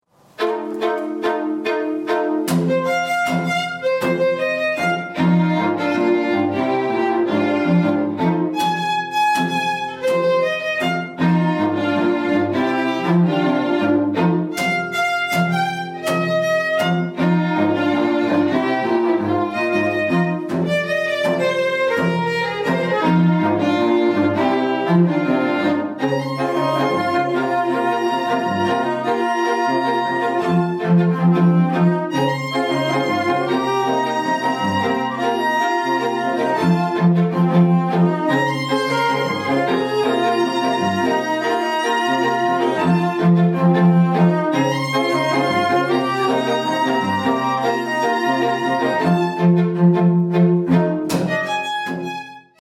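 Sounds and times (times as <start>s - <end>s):
strings: 0.2s - 52.6s.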